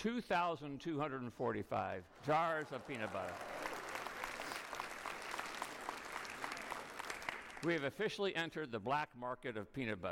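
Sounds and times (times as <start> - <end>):
speech: 0.0 - 3.6, 7.6 - 10.0
audience clapping: 2.1 - 8.0.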